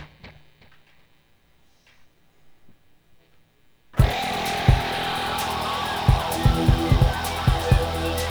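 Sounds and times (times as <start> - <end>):
soundcheck: 4.0 - 8.3.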